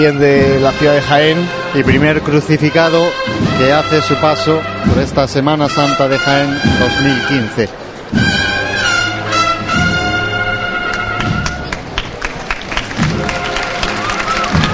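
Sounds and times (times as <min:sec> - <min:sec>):
speech: 0:00.0 - 0:08.6
sparse crowd applause at a procession: 0:06.8 - 0:14.7.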